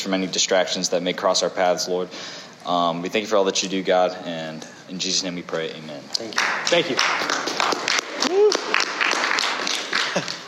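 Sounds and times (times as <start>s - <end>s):
speech: 0.0s - 7.4s
weak clapping: 6.2s - 10.4s.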